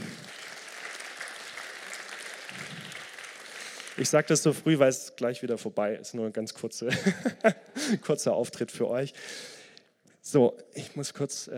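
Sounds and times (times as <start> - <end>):
audience applause: 0.0 - 4.3
speech: 4.0 - 9.6, 10.3 - 11.5
laughter: 6.9 - 8.0.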